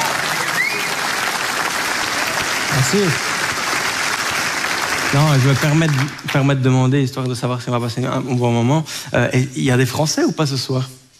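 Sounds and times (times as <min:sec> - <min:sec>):
comedy-show audience applause in Belgium: 0:00.0 - 0:06.6
speech: 0:02.7 - 0:03.3, 0:05.1 - 0:11.0.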